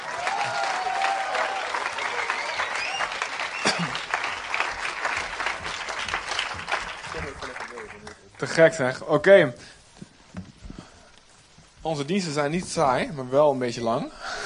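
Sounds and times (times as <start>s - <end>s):
audience applause: 0.0s - 8.9s
speech: 8.4s - 9.7s, 11.9s - 14.2s.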